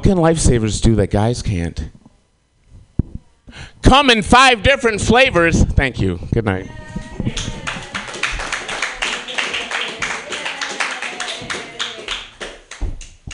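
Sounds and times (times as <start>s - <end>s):
speech: 0.1s - 2.0s, 3.5s - 7.5s
audience clapping: 7.2s - 13.3s.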